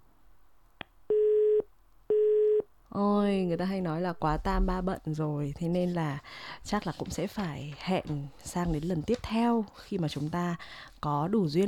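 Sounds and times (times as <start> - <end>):
telephone busy signal beeps: 1.1 - 2.6
speech: 2.9 - 11.6.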